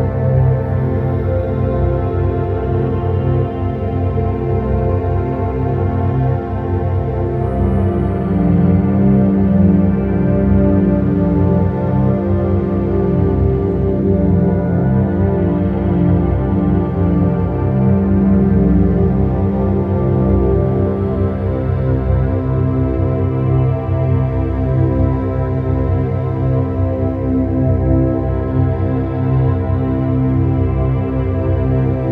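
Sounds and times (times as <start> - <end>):
meditation music with theta waves: 0.0 - 32.1.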